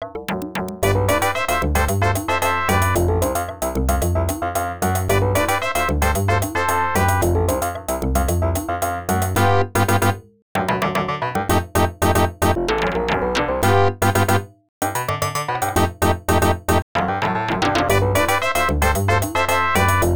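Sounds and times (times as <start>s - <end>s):
salsa music: 0.8s - 20.1s.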